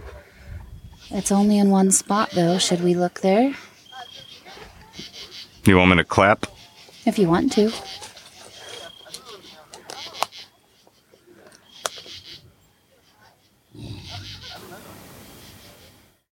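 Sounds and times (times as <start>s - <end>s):
speech: 1.1s - 3.7s, 5.6s - 6.5s, 7.1s - 8.0s
growl: 13.7s - 14.5s.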